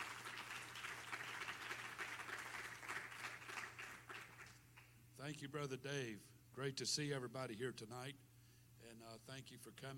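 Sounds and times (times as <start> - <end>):
audience clapping hands: 0.0 - 5.0
speech: 5.2 - 9.9.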